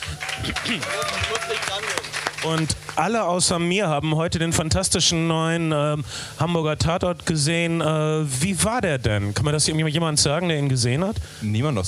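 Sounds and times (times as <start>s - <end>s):
voices talking and calling out: 0.0s - 2.7s
audience applause: 0.0s - 3.1s
speech: 0.4s - 11.8s.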